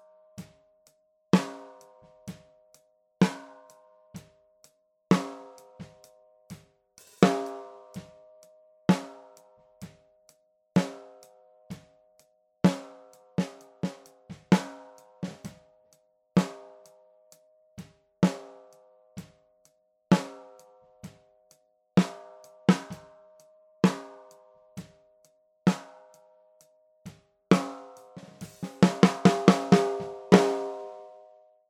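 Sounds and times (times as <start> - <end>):
snare drum recorded from the top in mono: 1.4 - 1.8, 5.1 - 6.0, 7.1 - 7.7, 12.7 - 15.6, 22.0 - 23.1, 23.8 - 24.2, 25.7 - 26.0, 27.5 - 31.0.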